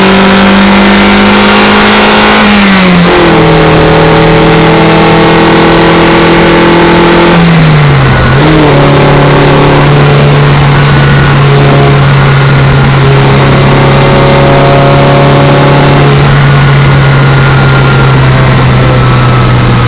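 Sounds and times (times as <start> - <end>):
exhaust with PPE header downpipe and TTE: 0.0 - 19.8.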